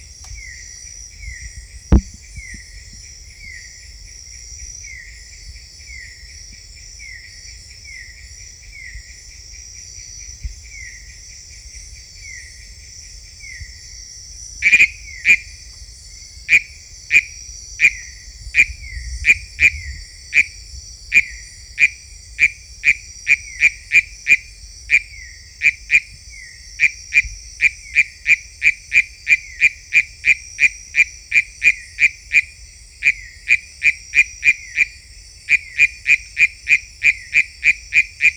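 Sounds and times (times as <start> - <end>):
insect drone: 0.0 - 38.3
Philautus frog calling: 14.6 - 15.5, 16.5 - 26.1, 26.8 - 38.3.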